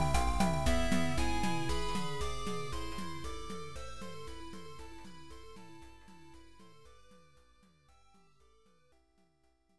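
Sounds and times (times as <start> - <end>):
peaceful forest background music: 0.0 - 7.2.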